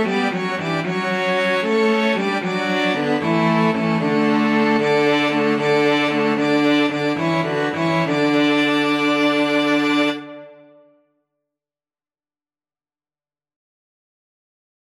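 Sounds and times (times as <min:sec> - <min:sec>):
string quartet: 0:00.0 - 0:10.7.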